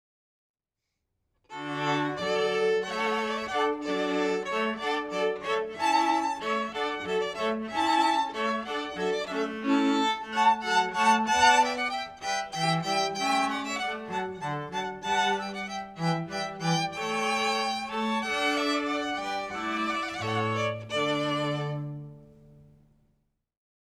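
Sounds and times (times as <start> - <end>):
hornpipe tune: 1.8 - 22.0.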